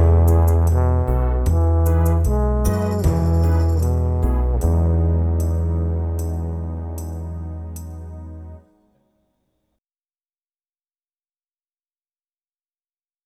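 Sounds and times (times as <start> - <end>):
trombone lip slurs: 0.2 - 8.3.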